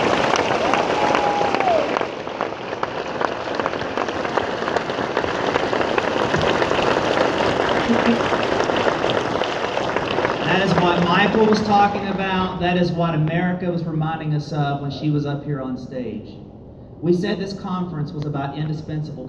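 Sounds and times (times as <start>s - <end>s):
audience applause: 0.0s - 13.0s
speech: 11.8s - 19.2s.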